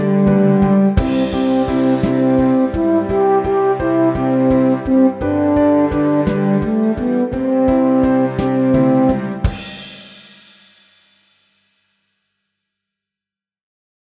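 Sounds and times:
ukulele playing a slow nursery rhyme: 0.0s - 9.6s.

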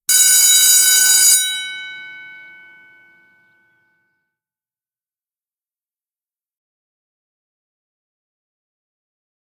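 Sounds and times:
school bell ringing: 0.1s - 3.8s.

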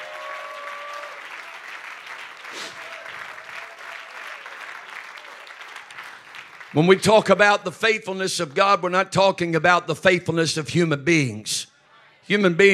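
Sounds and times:
audience clapping hands: 0.0s - 7.8s
speech: 6.7s - 11.7s, 12.3s - 12.7s.

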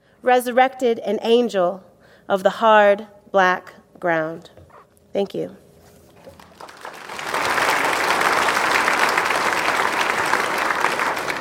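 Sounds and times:
speech: 0.2s - 4.6s, 5.2s - 5.6s
audience clapping: 6.2s - 11.3s.

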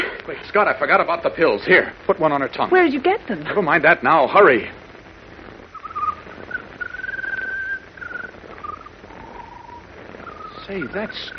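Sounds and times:
faint noisy background: 0.0s - 11.3s
speech: 0.3s - 4.8s, 10.7s - 11.3s
bird singing a peculiar song of whistled notes: 5.7s - 11.3s.

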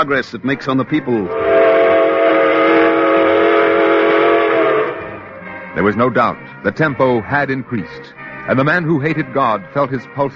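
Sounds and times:
speech: 0.0s - 1.6s, 5.8s - 10.3s
steam train engine whistle: 1.3s - 5.7s.

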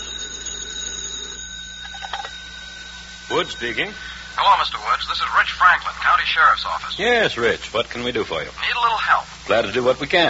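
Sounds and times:
telephone ringing: 0.0s - 7.0s
speech: 3.3s - 10.2s.

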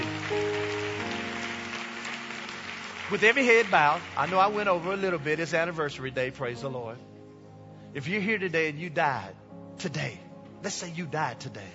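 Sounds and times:
audience hand clapping: 0.0s - 5.7s
speech: 3.1s - 7.1s, 7.9s - 11.7s.

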